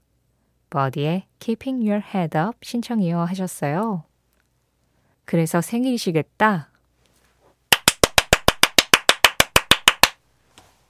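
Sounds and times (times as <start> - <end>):
speech: 0.7 - 4.1, 5.3 - 6.7
hand claps: 7.7 - 10.2.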